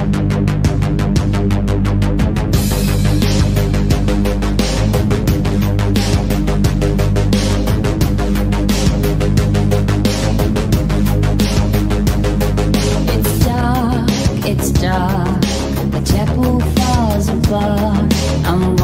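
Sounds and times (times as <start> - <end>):
darkwave electro synthpop industrial synth music: 0.0 - 18.8.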